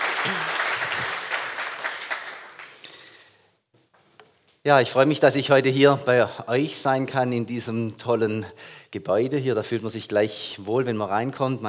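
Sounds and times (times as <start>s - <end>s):
audience applause: 0.0s - 3.0s
speech: 0.2s - 0.5s, 4.6s - 11.6s.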